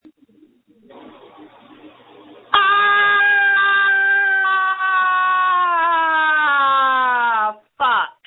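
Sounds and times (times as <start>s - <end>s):
person screaming: 2.6s - 8.0s.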